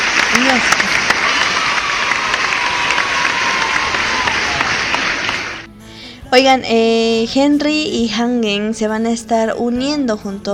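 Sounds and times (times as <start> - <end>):
crowd applause: 0.0 - 5.7
speech: 0.4 - 1.1, 6.3 - 10.5.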